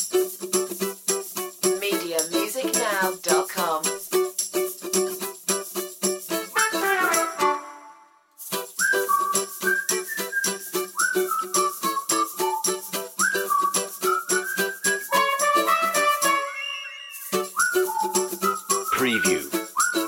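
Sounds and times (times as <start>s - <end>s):
percussion: 0.0s - 20.0s
ukulele: 0.0s - 20.0s
trumpet: 6.5s - 8.4s, 15.1s - 17.3s, 18.9s - 19.5s
whistles: 6.6s - 20.0s.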